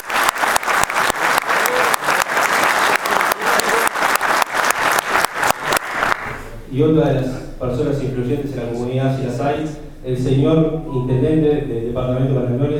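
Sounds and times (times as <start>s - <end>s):
strong applause: 0.0s - 6.4s
speech: 6.8s - 12.7s.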